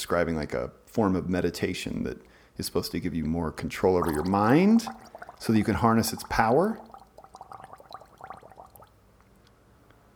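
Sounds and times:
speech: 0.0s - 6.9s
person gargling: 4.0s - 8.9s.

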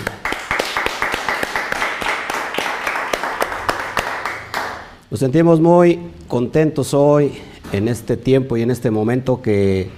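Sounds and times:
audience applause: 0.0s - 4.8s
speech: 5.1s - 9.9s.

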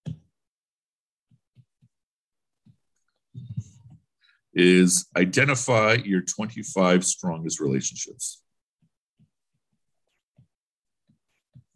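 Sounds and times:
speech: 4.5s - 8.4s
pen or marker writing by hand: 8.8s - 11.7s.

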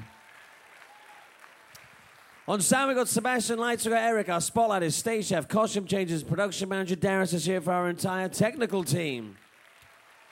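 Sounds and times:
crowd applause: 0.0s - 3.7s, 9.1s - 10.3s
speech: 2.5s - 9.4s.

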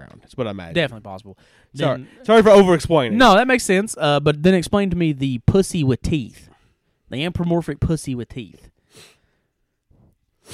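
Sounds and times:
speech: 0.3s - 6.5s, 7.1s - 9.1s
sniff: 8.8s - 10.5s.

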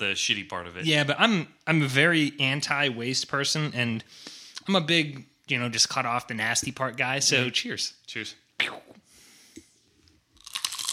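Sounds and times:
speech: 0.0s - 8.8s
crunchy bite of a fresh jalapeno: 10.4s - 10.9s.

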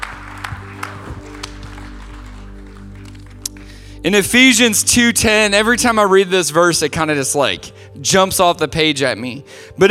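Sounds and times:
crowd applause: 0.0s - 3.8s
speech: 4.0s - 9.9s.

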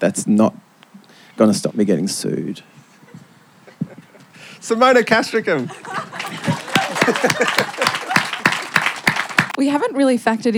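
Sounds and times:
speech: 0.0s - 0.7s, 1.4s - 2.8s, 4.6s - 6.1s, 7.1s - 8.0s, 9.6s - 10.5s
laughter: 2.9s - 4.4s, 5.0s - 9.4s
audience clapping: 5.9s - 9.6s.

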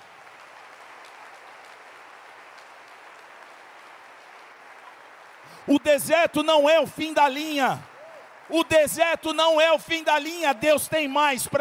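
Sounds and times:
applause: 0.0s - 11.6s
speech: 5.6s - 7.9s, 8.5s - 11.6s.

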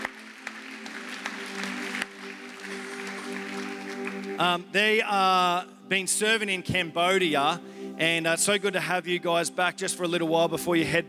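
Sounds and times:
audience clapping welcoming guests: 0.0s - 4.5s
speech: 4.4s - 11.0s.

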